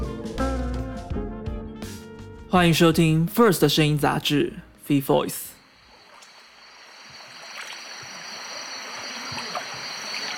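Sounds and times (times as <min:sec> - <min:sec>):
speech: 0:02.5 - 0:05.5
thin, constant high-pitched whine: 0:05.5 - 0:10.3
forest stream flowing: 0:05.6 - 0:10.3.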